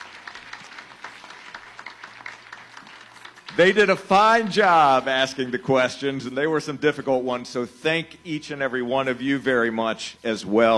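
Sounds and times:
round of applause for panelists: 0.0 - 5.9
speech: 3.6 - 10.7.

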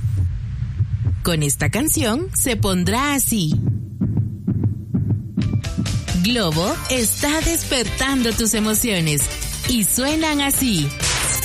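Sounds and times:
steady low hum: 0.0 - 6.3
deep heartbeat pulse: 0.0 - 8.5
speech: 1.2 - 3.7, 6.2 - 11.2.

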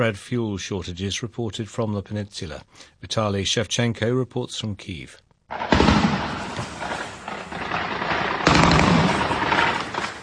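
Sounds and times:
speech: 0.0 - 6.2
air defence guns firing at drones: 5.5 - 10.2.

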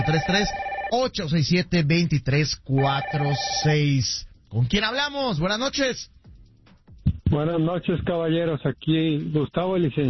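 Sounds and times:
telephone ringing with an incoming call to a radio show: 0.0 - 1.0, 2.8 - 3.8
speech: 0.0 - 6.2, 7.3 - 10.0.

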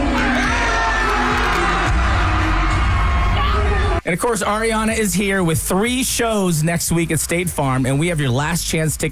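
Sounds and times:
concert crowd cheering: 0.1 - 4.0
speech: 4.1 - 9.1.

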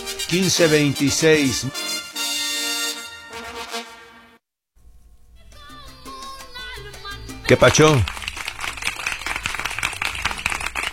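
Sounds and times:
speech: 0.3 - 1.8, 7.5 - 8.2
crowd applause for prize winner: 7.6 - 10.9.

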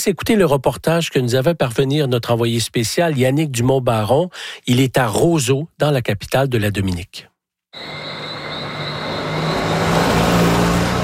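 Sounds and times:
speech: 0.0 - 8.2
car engine hum: 7.8 - 11.0
road noise: 7.8 - 11.0.

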